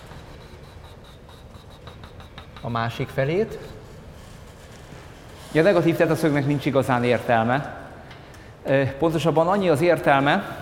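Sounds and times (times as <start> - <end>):
hand drawing a dashed line on a polar diagram: 0.0 - 4.8
speech: 2.6 - 3.8, 5.5 - 7.8, 8.6 - 10.6.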